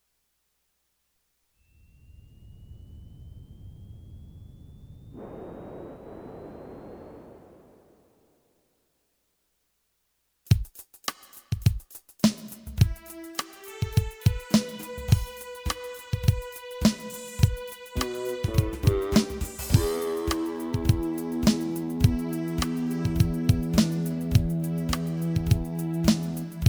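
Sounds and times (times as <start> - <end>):
instrumental music: 10.6 - 26.6.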